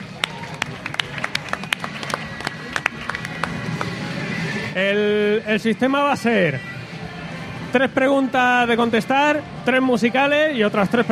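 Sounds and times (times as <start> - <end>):
small audience clapping for quiz contestants: 0.0 - 4.0
low murmur of voices: 0.0 - 11.1
speech: 4.8 - 6.7, 7.7 - 11.1.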